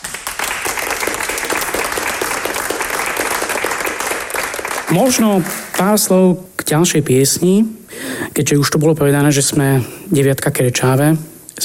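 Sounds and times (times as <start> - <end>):
audience applause: 0.0 - 6.0
speech: 4.9 - 11.6.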